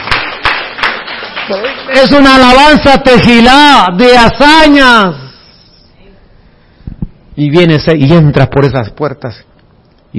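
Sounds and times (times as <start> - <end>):
audience applause: 0.0 - 2.6
speech: 1.5 - 5.2, 7.4 - 9.5.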